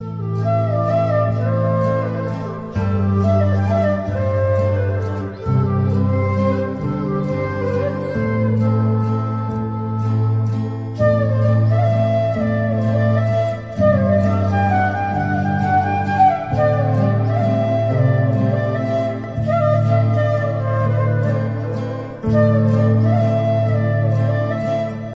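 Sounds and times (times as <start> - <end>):
flute ringtone: 0.0 - 25.1.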